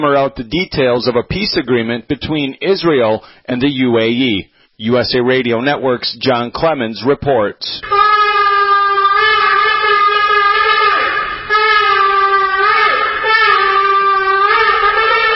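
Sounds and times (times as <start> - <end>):
speech: 0.0 - 8.0
shofar ram's horn being blown: 7.8 - 15.3.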